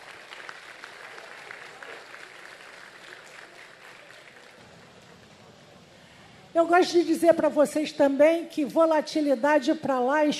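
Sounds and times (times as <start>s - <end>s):
crowd clapping for refinery staff at a company presentation: 0.0s - 6.0s
speech: 6.6s - 10.3s.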